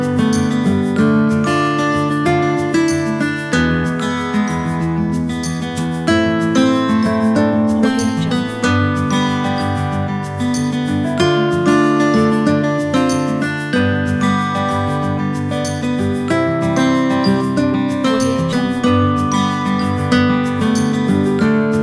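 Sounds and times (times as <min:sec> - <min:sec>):
soft sad guitars: 0:00.0 - 0:21.8.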